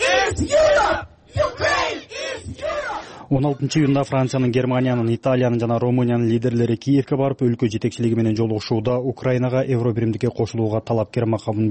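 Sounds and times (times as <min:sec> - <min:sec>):
crowd of Ukraine supporters chanting at a street rally: 0:00.0 - 0:04.4
speech: 0:00.3 - 0:01.1, 0:03.3 - 0:11.6.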